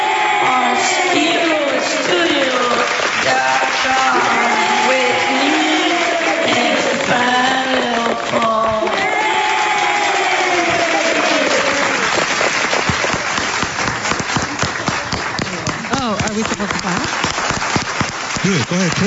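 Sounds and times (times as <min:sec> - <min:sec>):
cheering and whooping voices: 0:00.0 - 0:13.4
crowd applause: 0:00.0 - 0:19.0.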